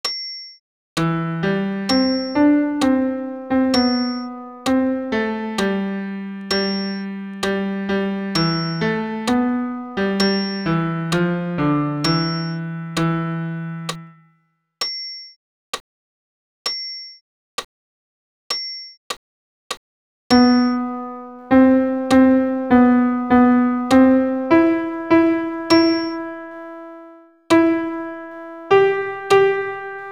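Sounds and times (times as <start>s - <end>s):
solo piano for tenor voice: 1.0s - 14.3s, 20.3s - 30.1s.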